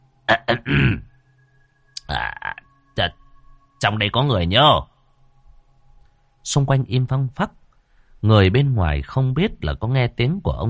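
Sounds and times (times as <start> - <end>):
man clearing his throat: 0.3 - 1.1
speech: 0.5 - 1.1, 3.0 - 3.2, 3.8 - 4.9, 6.4 - 7.6, 8.2 - 10.6.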